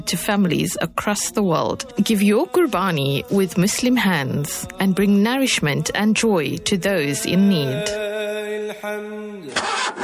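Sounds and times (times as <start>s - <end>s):
speech: 0.0s - 8.2s, 8.8s - 9.8s
pickup truck engine struggling to start: 9.5s - 10.0s.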